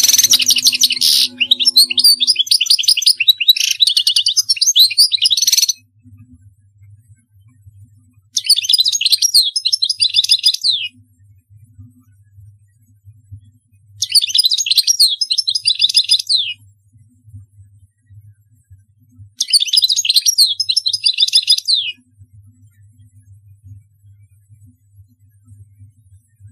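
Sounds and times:
low hum: 0:00.0 - 0:02.9
European goldfinch song: 0:00.0 - 0:05.8, 0:08.4 - 0:10.9, 0:14.0 - 0:16.6, 0:19.4 - 0:22.0.

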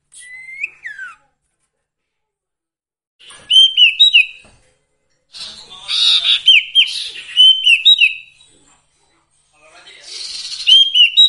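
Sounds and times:
song: 0:00.2 - 0:01.2, 0:03.4 - 0:04.4, 0:06.3 - 0:08.4, 0:10.3 - 0:11.2.

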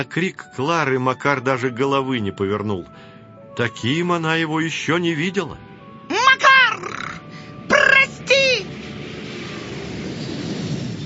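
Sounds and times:
speech: 0:00.0 - 0:05.7
roar of an airplane taking off: 0:03.1 - 0:11.0.

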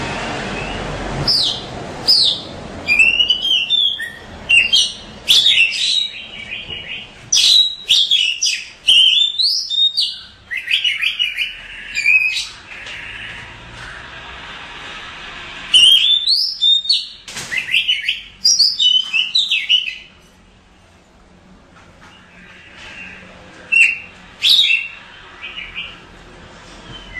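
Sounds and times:
Oriental magpie-robin song of whistles and chirps: 0:00.6 - 0:13.5, 0:15.8 - 0:20.2, 0:22.1 - 0:26.0.

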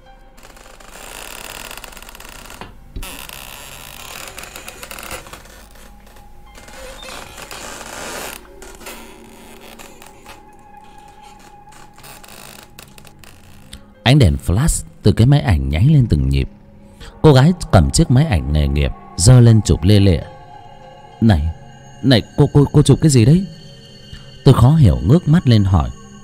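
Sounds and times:
coffin lid creaking as it is twisted open by hand: 0:00.4 - 0:13.9
speech: 0:14.1 - 0:16.6, 0:17.2 - 0:20.3, 0:21.2 - 0:23.6, 0:24.4 - 0:26.0.

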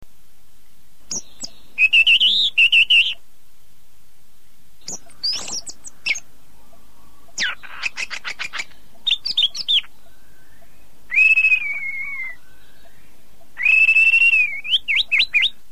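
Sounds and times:
bird song with whistles, chattering trills and chirps: 0:01.1 - 0:03.2, 0:04.8 - 0:15.7.

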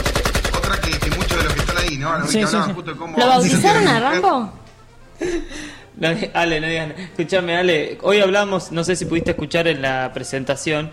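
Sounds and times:
automatic gunfire sound effect: 0:00.0 - 0:01.9
speech: 0:02.0 - 0:04.6, 0:05.2 - 0:10.9.

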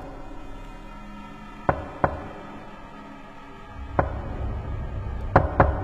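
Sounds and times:
knocking on a door at night: 0:01.7 - 0:02.4, 0:05.4 - 0:05.8.

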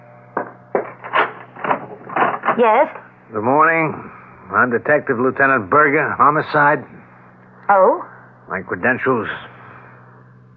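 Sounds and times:
low hum: 0:00.0 - 0:10.5
wooden knocks of a front door opening in a radio drama: 0:00.4 - 0:02.6
speech: 0:02.6 - 0:07.0, 0:07.7 - 0:09.5.

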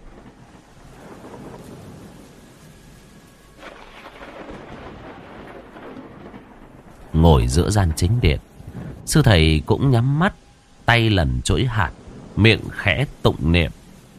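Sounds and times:
deep thunder rumbling: 0:00.0 - 0:14.1
heavy rain pouring outdoors: 0:00.0 - 0:14.1
speech: 0:07.2 - 0:08.5, 0:09.1 - 0:13.8.

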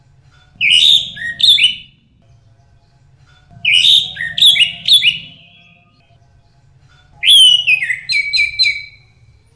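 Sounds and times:
bird song with whistle and rapid rattling trill: 0:00.6 - 0:02.0, 0:03.6 - 0:06.0, 0:07.2 - 0:09.3.

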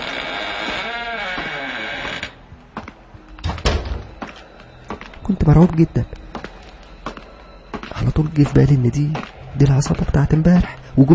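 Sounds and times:
door creaking open: 0:00.0 - 0:02.4, 0:03.4 - 0:04.3
speech: 0:05.3 - 0:06.2, 0:08.2 - 0:11.1.

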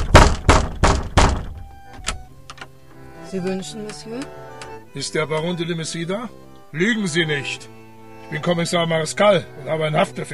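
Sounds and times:
police officers pounding on a wooden door: 0:00.0 - 0:02.3
speech: 0:03.3 - 0:10.3.

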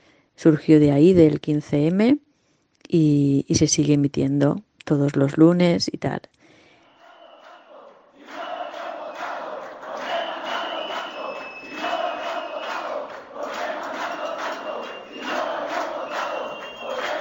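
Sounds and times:
speech: 0:00.4 - 0:02.2, 0:02.9 - 0:06.3
crowd shouting and chanting inside occupied bank: 0:07.0 - 0:17.1.

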